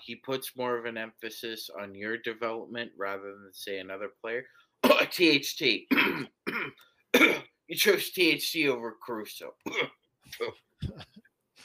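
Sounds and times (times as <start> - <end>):
speech: 0.1 - 11.2
person coughing: 4.8 - 5.1, 5.9 - 7.6, 9.6 - 11.2.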